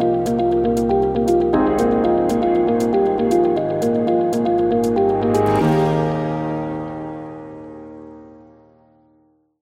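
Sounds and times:
corporate beat: 0:00.0 - 0:06.4.

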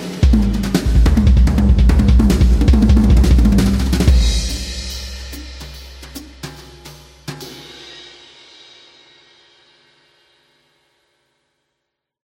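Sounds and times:
jazz drums: 0:00.0 - 0:08.5.

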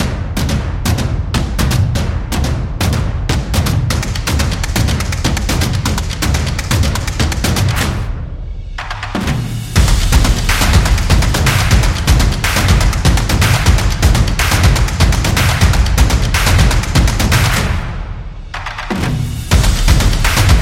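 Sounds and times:
drum beats: 0:00.0 - 0:20.6.

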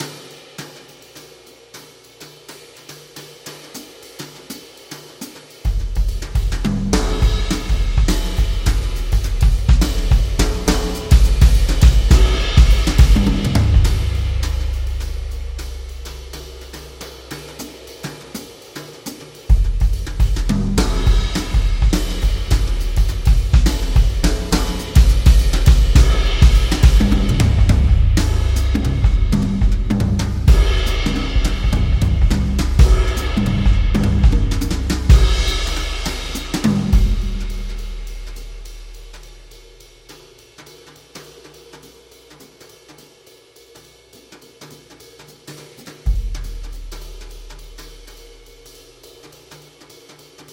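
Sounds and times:
energetic jazz music: 0:05.7 - 0:39.6.

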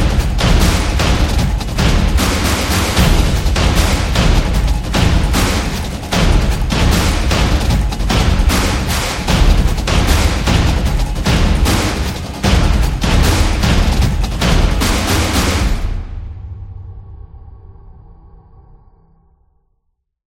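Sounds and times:
soccer fans drumming: 0:00.0 - 0:16.0.

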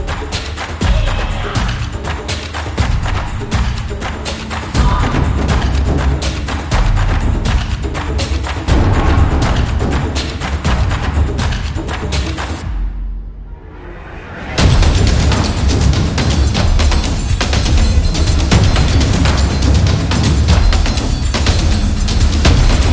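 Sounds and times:
Japanese taiko drums, epic: 0:00.0 - 0:13.2, 0:14.6 - 0:22.9.

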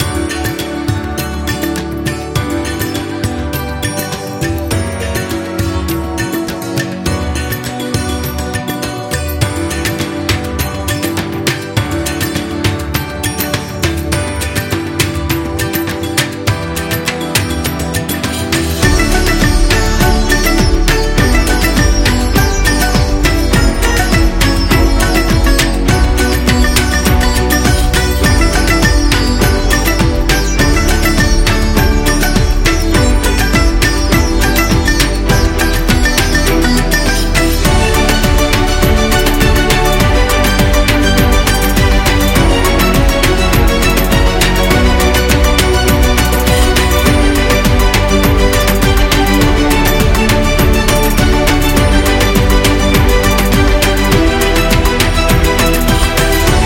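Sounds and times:
upbeat Indian music: 0:00.0 - 0:56.6.

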